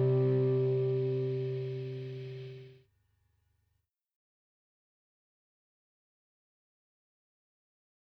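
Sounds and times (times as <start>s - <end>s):
bass: 0.0s - 2.7s.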